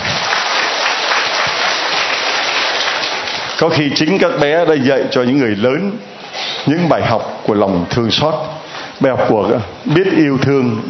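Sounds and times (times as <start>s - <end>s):
crowd applauding: 0.0s - 4.2s
speech: 3.6s - 10.8s.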